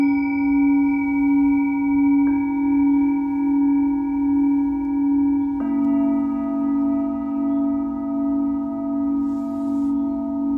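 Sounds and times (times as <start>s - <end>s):
singing bowls ringing: 0.0s - 10.5s
faint soft hiss: 9.2s - 10.1s.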